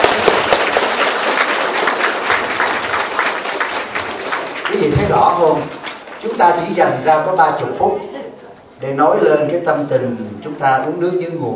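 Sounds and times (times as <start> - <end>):
audience applauding: 0.0 - 7.5
speech: 5.1 - 8.2, 8.8 - 11.5.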